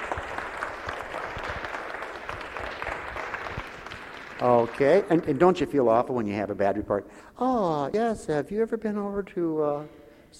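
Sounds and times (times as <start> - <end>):
audience clapping: 0.0 - 6.3
speech: 4.4 - 10.3.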